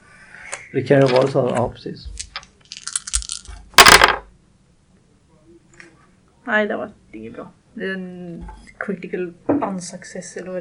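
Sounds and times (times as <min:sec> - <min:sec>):
speech: 0:00.7 - 0:02.2, 0:06.5 - 0:10.5
dice rolled across a hard surface: 0:02.2 - 0:04.3.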